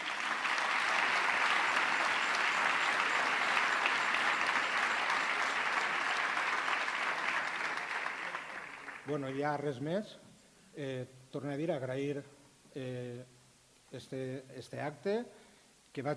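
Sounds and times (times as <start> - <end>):
audience applause: 0.0 - 9.4
speech: 9.1 - 10.2, 10.8 - 15.4, 16.0 - 16.1.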